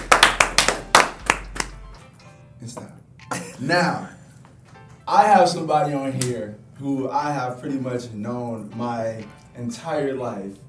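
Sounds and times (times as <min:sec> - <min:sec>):
round of applause: 0:00.0 - 0:01.7
speech: 0:03.6 - 0:04.2, 0:05.1 - 0:10.6.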